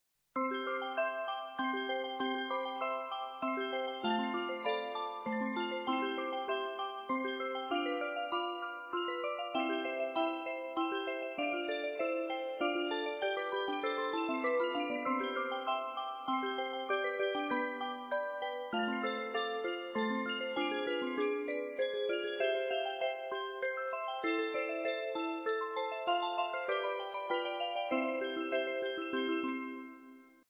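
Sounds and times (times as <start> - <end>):
background music: 0.4 - 30.2.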